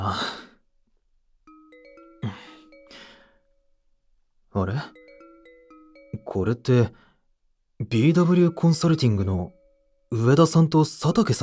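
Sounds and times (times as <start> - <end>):
phone app ringtone for an incoming call: 1.4 - 3.8, 4.7 - 7.1, 7.9 - 11.4
speech: 4.6 - 5.0, 6.3 - 7.0, 7.8 - 11.4.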